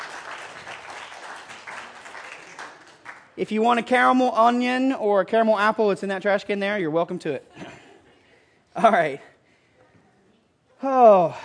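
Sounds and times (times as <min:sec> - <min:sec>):
audience applause for contestants: 0:00.0 - 0:03.4
speech: 0:03.4 - 0:07.6, 0:08.8 - 0:09.3, 0:10.8 - 0:11.4.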